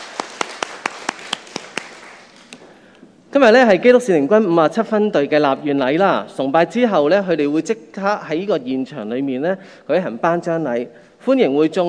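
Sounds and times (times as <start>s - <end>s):
audience clapping: 0.0s - 2.6s
speech: 3.4s - 11.8s.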